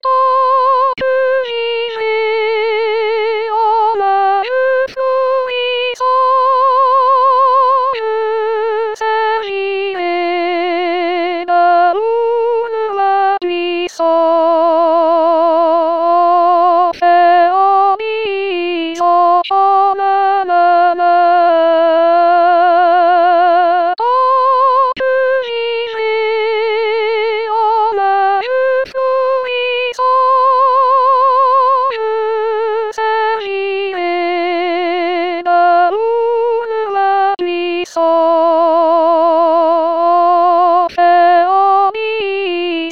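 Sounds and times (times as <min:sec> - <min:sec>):
soprano singing: 0:00.0 - 0:42.9.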